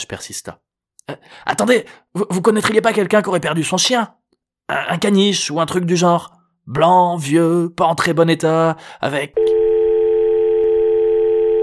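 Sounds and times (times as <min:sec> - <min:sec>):
speech: 0:00.1 - 0:09.6
telephone dial tone after hang-up: 0:09.4 - 0:11.6.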